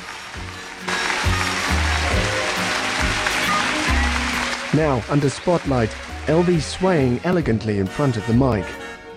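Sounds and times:
audience rapturous applause: 0.0s - 7.2s
speech: 4.7s - 8.8s.

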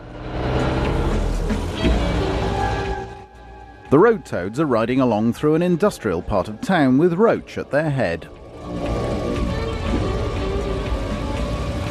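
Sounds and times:
motorcycle engine revving toward 5,000 RPM: 0.0s - 3.1s, 8.5s - 11.9s
speech: 3.9s - 9.0s.

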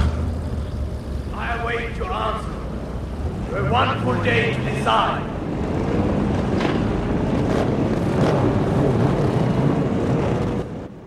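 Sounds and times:
motorbike and pickup truck engines starting in a wasteland: 0.0s - 11.0s
speech: 3.6s - 5.4s.

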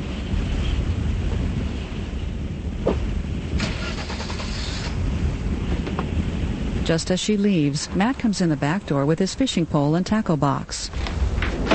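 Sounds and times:
wind blowing outdoors: 0.0s - 11.7s
speech: 6.9s - 11.1s.

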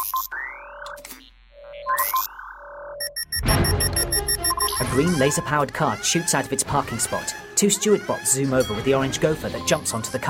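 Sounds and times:
electronic tones chirping and sweeping upward: 1.8s - 5.0s
electronic alarm beeping: 3.0s - 5.4s
speech: 4.8s - 10.2s.

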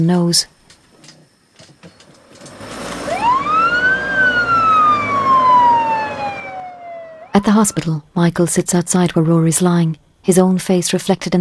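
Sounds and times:
speech: 0.0s - 0.6s, 7.4s - 11.3s
ambulance siren wailing: 3.0s - 8.0s.

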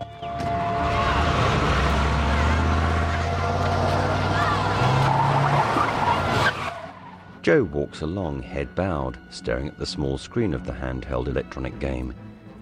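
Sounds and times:
4x4 vehicle driving off: 0.0s - 7.4s
speech: 7.4s - 12.2s.

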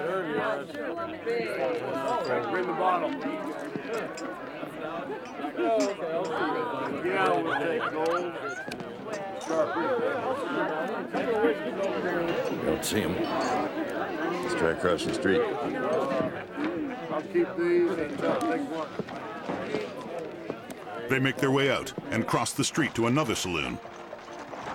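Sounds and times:
speech: 0.4s - 20.0s, 21.1s - 24.0s
busy saloon crowd chatter: 12.0s - 15.2s, 21.1s - 23.8s.

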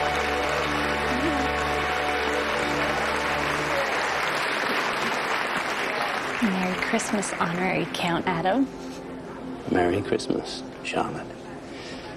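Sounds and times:
guests applauding: 0.0s - 8.2s
speech: 6.4s - 8.9s, 9.7s - 11.4s.

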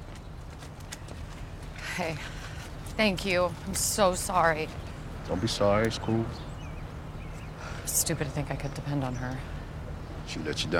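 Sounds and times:
woman's footsteps on steps and a sidewalk: 0.0s - 4.0s
speech: 2.0s - 6.4s, 8.0s - 9.6s, 10.3s - 10.7s.

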